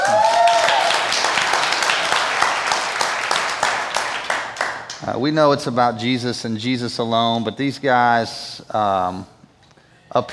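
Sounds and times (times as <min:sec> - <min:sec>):
audience clapping hands: 0:00.0 - 0:05.1
speech: 0:05.1 - 0:09.4, 0:10.1 - 0:10.3.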